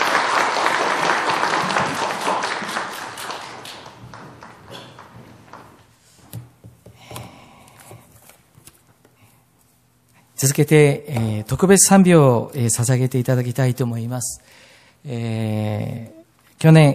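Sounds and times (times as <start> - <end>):
audience applause: 0.0 - 5.9
speech: 10.4 - 16.9.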